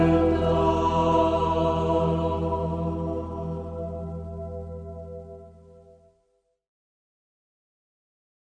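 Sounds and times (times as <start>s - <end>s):
Lenten communion song singing: 0.0s - 3.7s.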